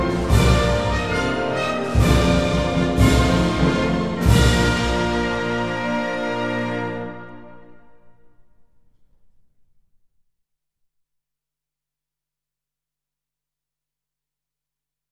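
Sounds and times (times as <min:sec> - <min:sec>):
orchestra playing a national anthem: 0:00.0 - 0:08.5.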